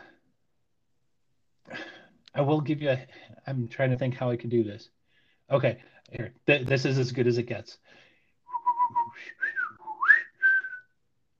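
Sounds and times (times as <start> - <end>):
speech: 2.4 - 8.0
person whistling a bird-like call: 8.5 - 11.0.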